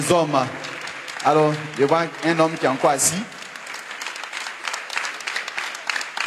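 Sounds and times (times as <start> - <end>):
crowd applauding: 0.0 - 6.2
speech: 0.1 - 0.6, 1.2 - 3.4.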